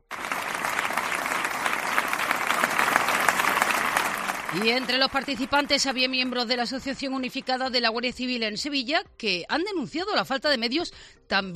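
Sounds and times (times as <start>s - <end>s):
emotional applause after a minute's silence: 0.0s - 8.4s
speech: 4.5s - 11.5s.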